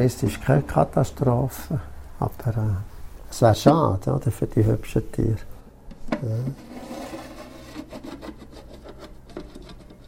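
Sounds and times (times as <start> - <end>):
speech: 0.0 - 5.5, 6.1 - 6.9
lid being slid off a container: 6.4 - 8.9.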